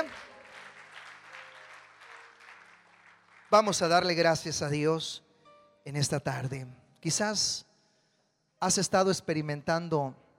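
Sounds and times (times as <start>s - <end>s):
church congregation clapping: 0.0s - 4.9s
speech: 3.5s - 7.7s, 8.6s - 10.2s.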